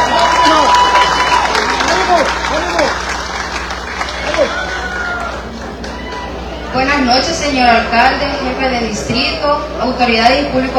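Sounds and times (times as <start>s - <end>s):
cheers and shouting voices: 0.0s - 3.1s, 3.9s - 7.0s
crowd applauding: 0.0s - 7.0s
speech: 7.0s - 10.7s.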